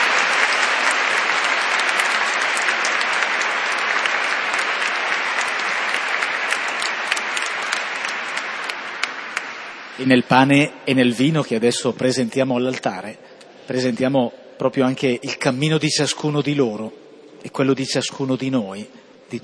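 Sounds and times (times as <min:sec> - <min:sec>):
audience applause: 0:00.0 - 0:10.3
speech: 0:10.0 - 0:19.4.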